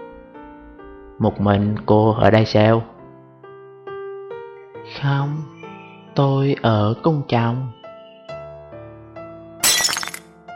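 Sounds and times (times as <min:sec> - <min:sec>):
speech: 0:01.2 - 0:02.9, 0:05.0 - 0:05.5, 0:06.2 - 0:07.8
glass of tea falling to the floor and shattering: 0:09.6 - 0:10.2
scattering glass shards tinkling: 0:09.6 - 0:10.2.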